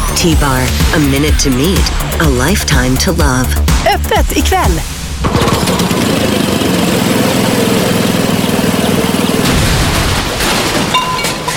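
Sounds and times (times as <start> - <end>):
speech: 0.2 - 7.6
poorly running lawn mower engine chugging and sputtering: 5.2 - 11.5.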